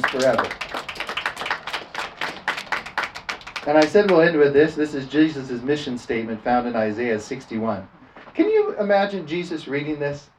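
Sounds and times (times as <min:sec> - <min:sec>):
crowd clapping in a fast uneven burst: 0:00.0 - 0:04.2
speech: 0:00.1 - 0:00.6, 0:03.6 - 0:10.3.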